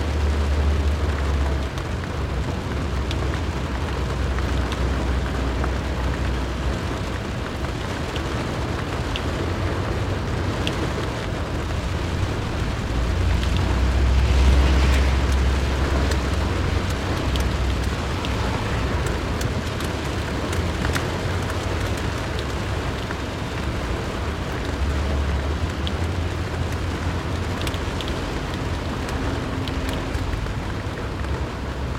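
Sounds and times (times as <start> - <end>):
rain on a car window: 0.0 - 31.9
low rumble: 11.4 - 20.6.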